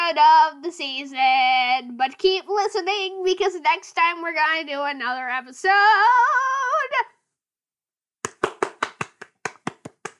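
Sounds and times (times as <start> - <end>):
speech: 0.1 - 7.2
round of applause: 8.2 - 10.1.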